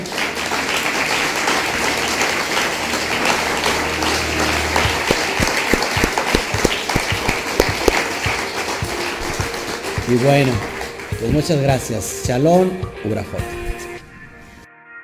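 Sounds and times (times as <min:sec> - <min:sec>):
sharp individual claps: 0:00.0 - 0:11.4
crowd applauding: 0:00.0 - 0:11.9
speech: 0:10.1 - 0:13.6.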